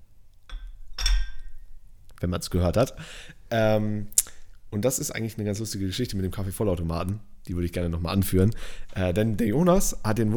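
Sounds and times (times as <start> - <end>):
coffee mugs clinking together: 0.5 - 1.6
speech: 2.2 - 10.3.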